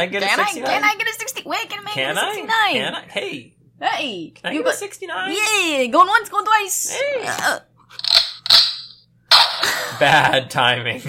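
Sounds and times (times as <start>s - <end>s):
speech: 0.0s - 8.1s, 9.9s - 11.0s
gunshot sound effect from sound machine: 8.6s - 9.8s.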